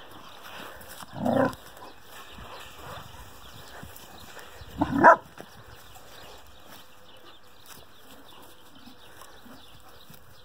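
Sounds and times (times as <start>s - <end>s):
dog barking: 4.8s - 5.2s.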